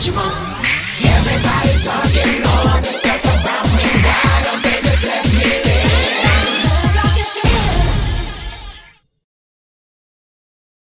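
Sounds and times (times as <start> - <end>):
cheer music: 1.0 - 9.0.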